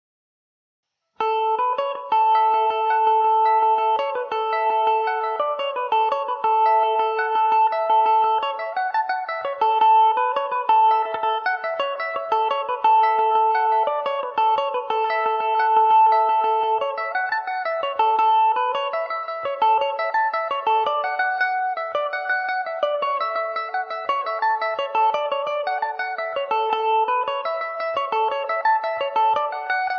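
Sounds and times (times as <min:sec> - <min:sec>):
Irish mandolin in A major: 0:01.2 - 0:29.9.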